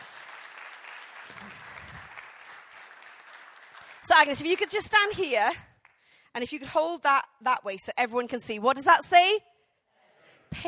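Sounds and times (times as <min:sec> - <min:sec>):
audience applause: 0:00.0 - 0:04.6
speech: 0:04.1 - 0:05.7, 0:06.4 - 0:09.5.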